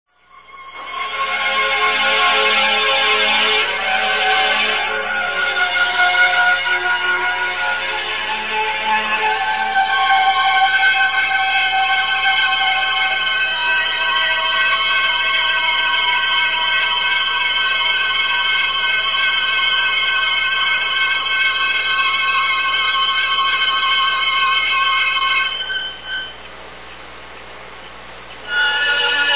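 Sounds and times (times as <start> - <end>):
organ: 0.2 - 26.3, 28.4 - 29.3.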